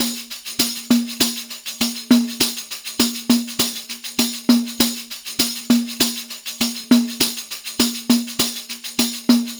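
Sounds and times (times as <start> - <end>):
Arabian traditional percussion loop: 0.0 - 9.5.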